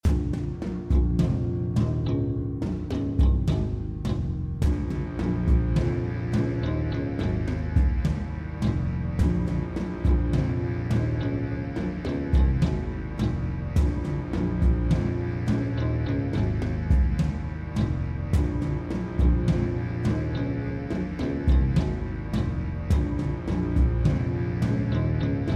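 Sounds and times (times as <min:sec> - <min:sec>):
town orchestral music: 0:00.0 - 0:25.5.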